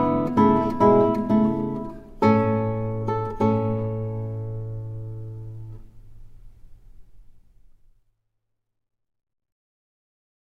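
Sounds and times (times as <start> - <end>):
andante guitar piece: 0.0 - 7.5.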